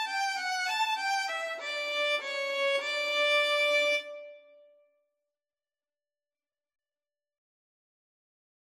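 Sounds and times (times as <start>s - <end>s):
violin duet: 0.0s - 4.4s.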